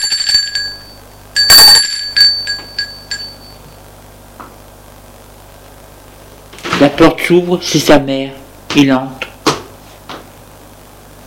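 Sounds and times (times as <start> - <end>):
doorbell ringing: 0.0 - 3.8
speech: 6.8 - 9.2.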